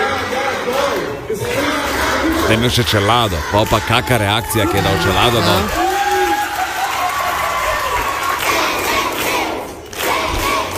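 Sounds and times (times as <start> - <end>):
loud crowd cheering with excited shouts and whoops: 0.0 - 10.7
speech: 2.5 - 5.8
sustained applause: 5.1 - 10.7.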